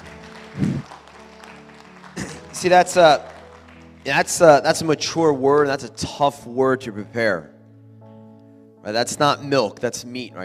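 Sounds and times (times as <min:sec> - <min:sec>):
audience clapping: 0:00.0 - 0:05.7
speech: 0:02.6 - 0:03.3, 0:04.0 - 0:07.5, 0:08.8 - 0:10.4.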